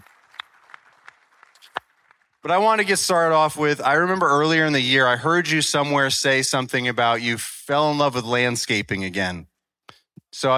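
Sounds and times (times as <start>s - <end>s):
audience applause: 0.0s - 3.5s
speech: 2.4s - 9.5s, 10.3s - 10.5s.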